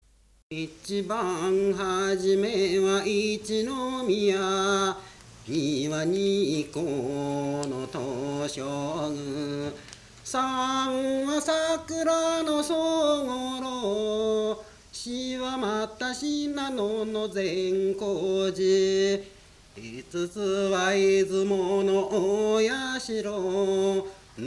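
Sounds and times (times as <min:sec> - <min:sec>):
Japanese minyo folk song: 0:00.5 - 0:24.4.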